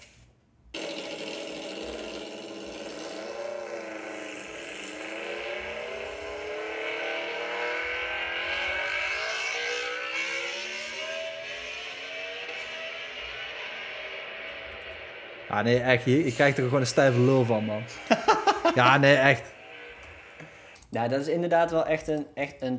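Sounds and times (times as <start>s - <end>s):
Aprilia RSV4 V4 motorcycle engine revving: 0.8s - 20.9s
speech: 15.5s - 18.2s, 18.8s - 19.6s, 20.9s - 22.7s
laughter: 17.8s - 19.6s.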